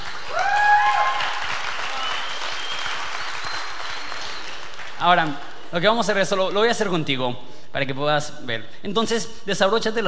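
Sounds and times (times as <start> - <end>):
audience applause: 0.0 - 5.7
speech: 5.0 - 10.0.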